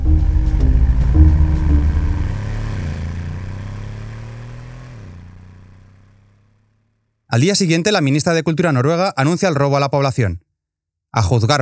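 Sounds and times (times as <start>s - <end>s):
car engine revving as the car drives off: 0.0s - 7.1s
speech: 7.4s - 10.4s, 11.1s - 11.6s.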